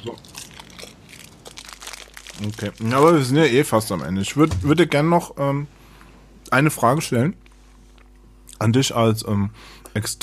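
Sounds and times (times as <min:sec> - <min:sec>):
speech: 0:00.0 - 0:00.3, 0:02.4 - 0:05.8, 0:06.5 - 0:07.4, 0:08.6 - 0:10.2
plastic bag crinkling: 0:00.0 - 0:04.0.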